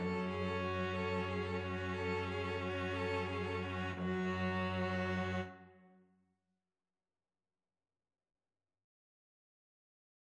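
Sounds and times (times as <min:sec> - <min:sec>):
string trio playing: 0:00.0 - 0:05.8.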